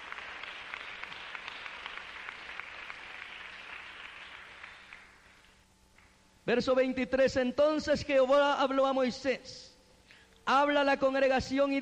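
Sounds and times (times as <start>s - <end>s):
audience applause: 0.0s - 5.4s
speech: 6.5s - 9.7s, 10.5s - 11.7s.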